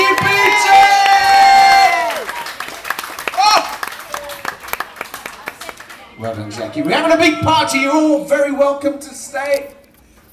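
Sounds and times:
crowd cheering and applauding: 0:00.0 - 0:07.3
speech: 0:06.8 - 0:09.8.

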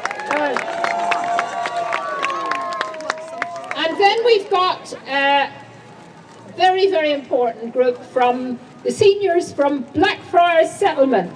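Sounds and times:
crowd cheering and whooping: 0:00.0 - 0:04.1
scattered clapping: 0:00.0 - 0:04.4
speech: 0:04.3 - 0:05.6, 0:06.6 - 0:11.3.

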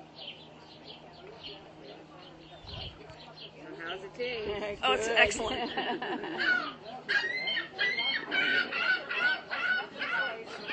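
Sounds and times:
speech: 0:04.0 - 0:07.4
laughter: 0:04.4 - 0:06.9
seagull calling: 0:05.6 - 0:10.7.

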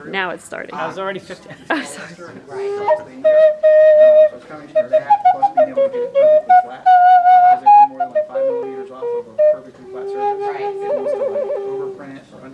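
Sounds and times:
flute: 0:02.5 - 0:12.2.

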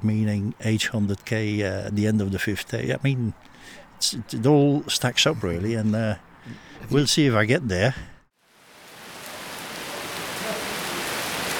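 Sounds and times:
speech: 0:00.0 - 0:08.1
heavy rain: 0:08.4 - 0:11.5.

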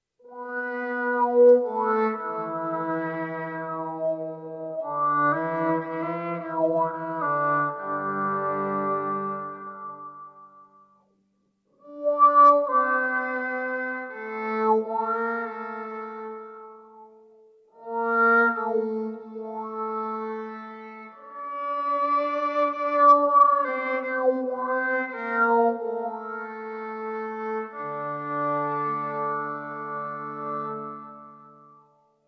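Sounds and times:
violin with wah effect: 0:00.2 - 0:10.6, 0:11.8 - 0:31.7.

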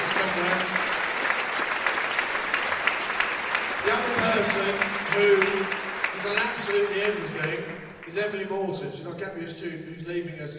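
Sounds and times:
audience cheering and applauding: 0:00.0 - 0:08.2
speech: 0:04.4 - 0:10.5.

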